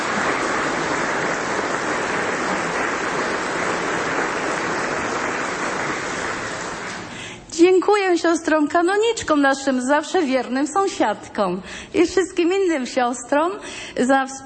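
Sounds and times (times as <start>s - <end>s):
audience applause: 0.0s - 7.3s
speech: 7.7s - 14.4s.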